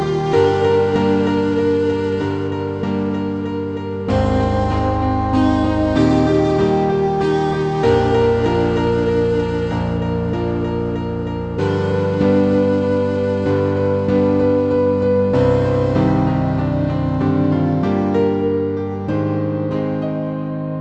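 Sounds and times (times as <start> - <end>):
piano: 0.0 - 20.8.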